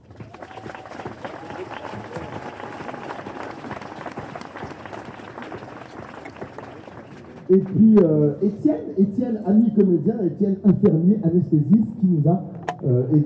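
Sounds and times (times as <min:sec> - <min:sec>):
audience applause: 0:00.0 - 0:07.8
speech: 0:07.5 - 0:13.2.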